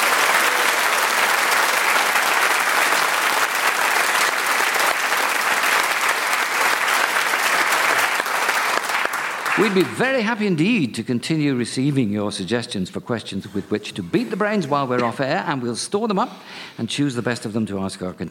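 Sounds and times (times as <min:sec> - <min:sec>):
audience applause: 0:00.0 - 0:10.1
speech: 0:09.6 - 0:18.2.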